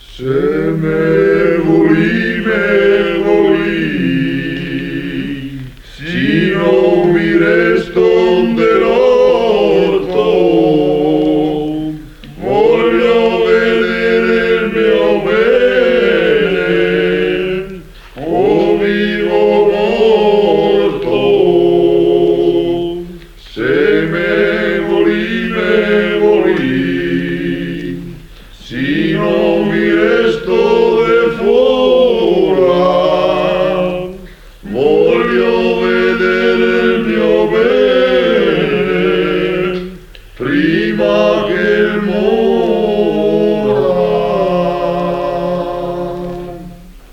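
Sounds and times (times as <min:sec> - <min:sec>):
choir singing: 0:00.0 - 0:47.1.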